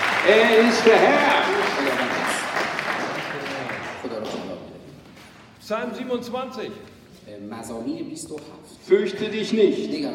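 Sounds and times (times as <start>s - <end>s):
audience applause: 0.0s - 4.4s
speech: 0.2s - 1.8s, 5.7s - 10.1s.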